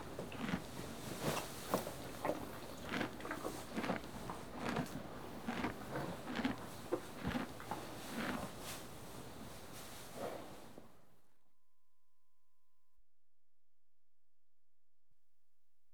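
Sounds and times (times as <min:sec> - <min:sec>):
horse eating hay: 0:00.0 - 0:10.1.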